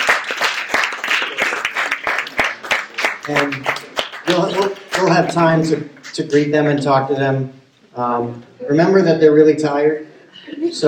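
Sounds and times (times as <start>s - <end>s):
audience applauding: 0.0s - 6.1s
speech: 3.3s - 10.8s.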